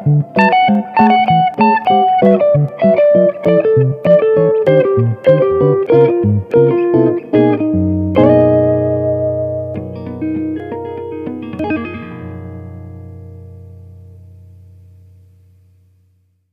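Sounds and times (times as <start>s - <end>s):
archtop guitar with Brite setting off: 0.0s - 16.4s.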